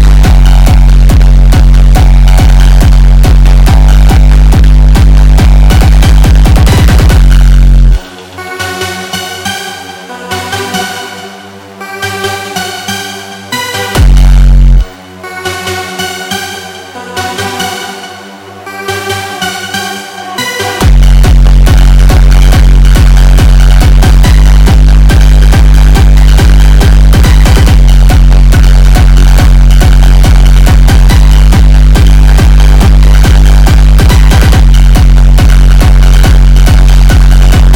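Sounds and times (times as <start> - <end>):
boosted bass: 0.0 - 11.2, 11.8 - 18.0, 18.7 - 37.7.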